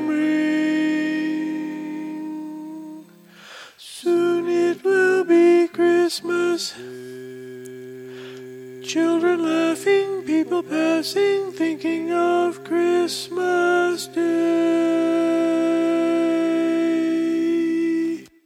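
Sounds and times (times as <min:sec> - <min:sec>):
tenor voice singing a learning track: 0:00.0 - 0:18.4.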